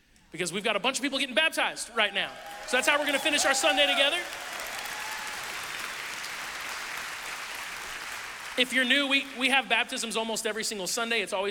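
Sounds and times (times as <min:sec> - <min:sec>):
speech: 0:00.3 - 0:04.5, 0:08.6 - 0:11.4
audience cheering: 0:01.9 - 0:09.2.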